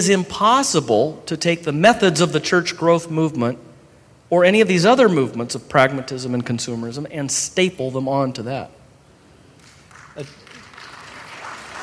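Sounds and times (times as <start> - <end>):
speech: 0.0 - 3.7, 4.3 - 8.8, 10.2 - 10.4
soft scattered audience applause: 9.6 - 11.8.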